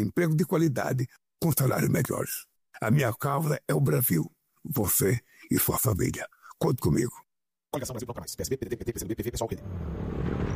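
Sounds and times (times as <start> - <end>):
speech: 0.0 - 10.5
motorcycle passing outside: 9.6 - 10.5.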